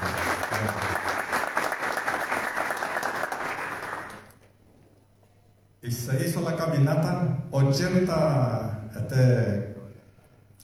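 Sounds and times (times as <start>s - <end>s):
audience applause: 0.0s - 4.3s
speech: 0.5s - 1.0s, 5.8s - 9.7s.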